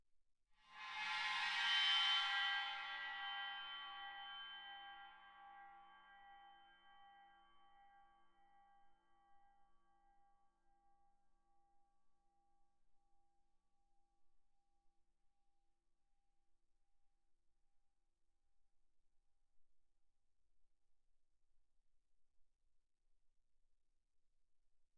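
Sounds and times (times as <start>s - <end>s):
Chinese bowed suspended cymbals: 0.7s - 6.9s.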